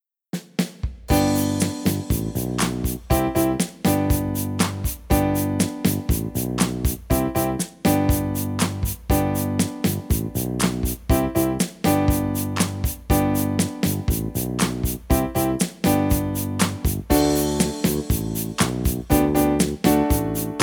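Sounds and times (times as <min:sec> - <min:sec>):
instrumental music: 0:01.0 - 0:20.6.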